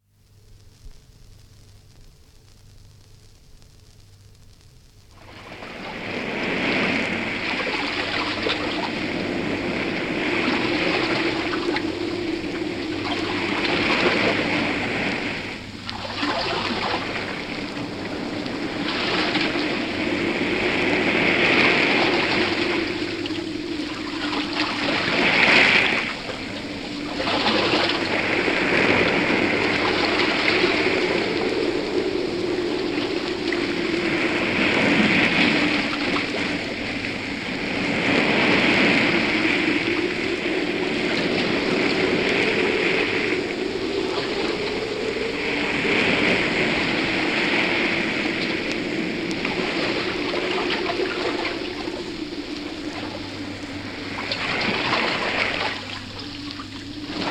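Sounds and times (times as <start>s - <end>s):
waves lapping on a shore from a 78 disc: 5.1s - 57.3s.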